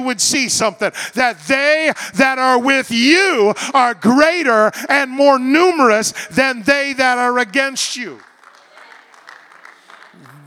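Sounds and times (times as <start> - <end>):
speech: 0.0 - 8.3
polite golf clap applause: 8.0 - 10.4.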